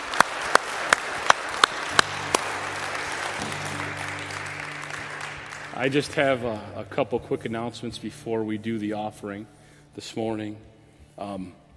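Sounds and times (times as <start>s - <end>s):
audience hand clapping: 0.0s - 7.6s
speech: 5.8s - 11.6s.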